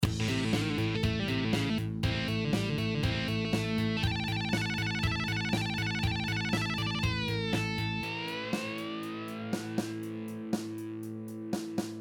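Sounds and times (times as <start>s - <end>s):
guitar: 0.0s - 12.0s.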